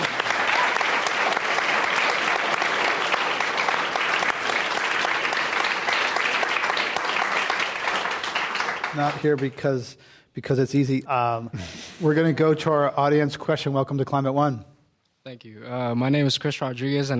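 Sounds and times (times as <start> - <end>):
audience applause at a live climate discussion event: 0.0 - 9.6
speech: 9.0 - 17.1.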